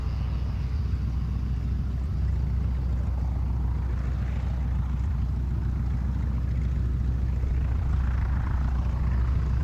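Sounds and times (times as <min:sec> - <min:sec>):
distant CAC CA-16 Wirraway aircraft engine starting up: 0:00.0 - 0:09.6.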